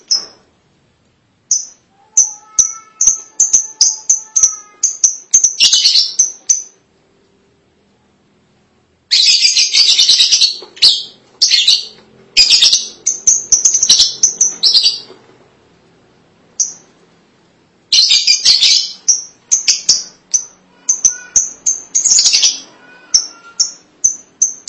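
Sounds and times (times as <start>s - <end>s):
lovebird calls: 1.5s - 6.8s, 9.1s - 15.1s, 17.9s - 24.6s.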